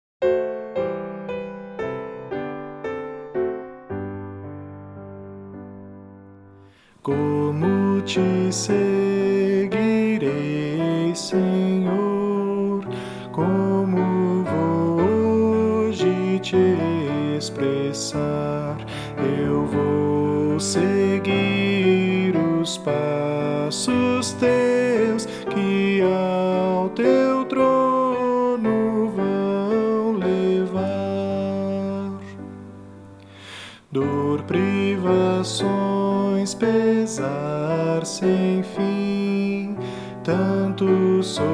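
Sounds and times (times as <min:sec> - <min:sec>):
piano: 0:00.2 - 0:41.5
person singing: 0:06.7 - 0:41.5.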